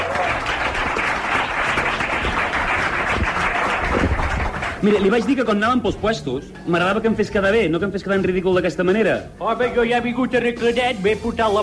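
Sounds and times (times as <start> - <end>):
audience applause: 0.0 - 5.4
speech: 4.8 - 11.6.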